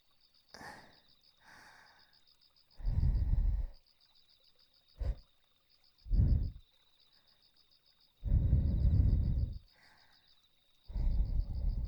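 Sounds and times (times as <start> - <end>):
breathing into the ear: 0.6 - 2.1, 2.8 - 3.8, 6.1 - 6.6, 8.2 - 10.3, 10.9 - 11.8.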